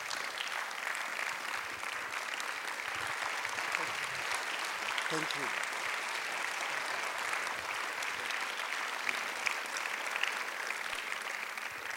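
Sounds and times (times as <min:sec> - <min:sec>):
audience applause: 0:00.0 - 0:11.9
speech: 0:05.1 - 0:05.7.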